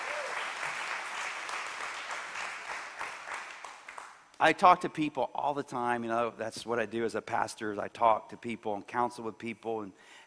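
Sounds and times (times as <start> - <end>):
crowd applause: 0.0 - 4.2
speech: 4.4 - 10.2.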